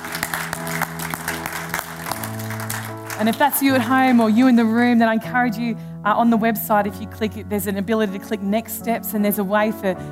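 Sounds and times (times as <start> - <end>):
room full of people clapping in celebration: 0.0 - 4.6
sustained music playing: 0.0 - 10.1
speech: 3.2 - 10.1.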